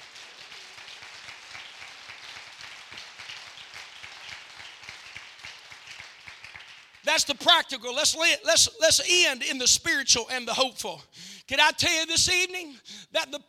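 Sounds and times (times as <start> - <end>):
audience clapping: 0.0 - 7.4
speech: 7.1 - 13.4.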